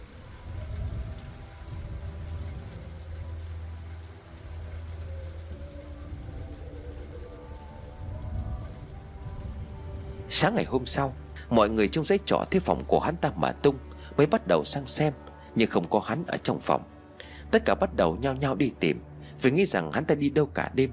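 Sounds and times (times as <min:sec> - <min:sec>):
rain pattering down: 0:00.0 - 0:20.9
speech: 0:10.4 - 0:20.9.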